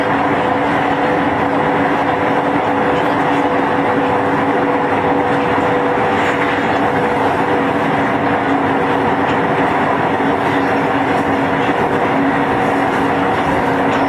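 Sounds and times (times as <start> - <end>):
Seoul subway Line 2 train running between Seongnae and Gangbyeon: 0.0 - 14.0.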